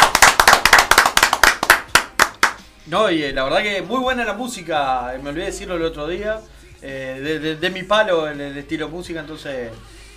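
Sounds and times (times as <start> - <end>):
small group applauding for a commentator: 0.0 - 2.7
speech: 2.9 - 10.0.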